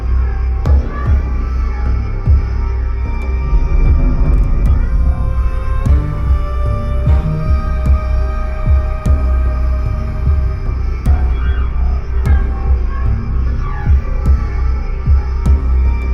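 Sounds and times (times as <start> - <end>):
dark magic background music: 0.0 - 16.1.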